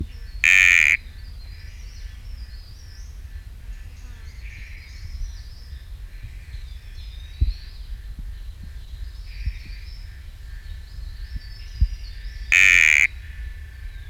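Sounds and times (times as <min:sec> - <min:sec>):
sticky frog nasal buzz: 0:00.5 - 0:01.0, 0:12.5 - 0:13.1.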